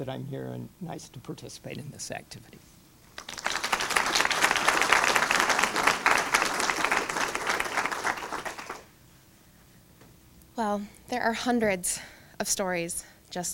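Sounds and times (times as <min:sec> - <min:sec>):
speech: 0:00.0 - 0:02.7, 0:10.6 - 0:13.5
audience applause: 0:03.1 - 0:08.9.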